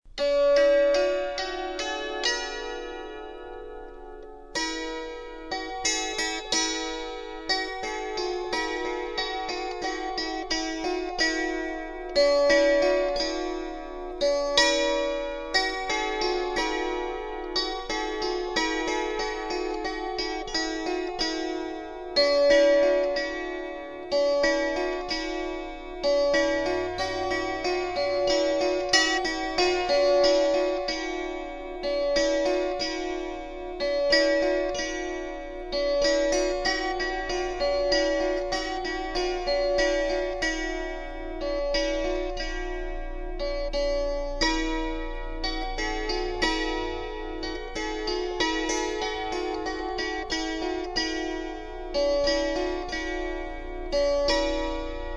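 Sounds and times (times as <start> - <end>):
kantele: 0.1 - 55.1.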